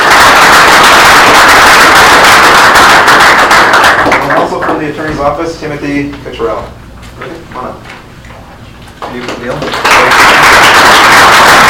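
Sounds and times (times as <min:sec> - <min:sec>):
audience applause: 0:00.0 - 0:04.8, 0:09.5 - 0:11.6
speech: 0:05.2 - 0:06.8.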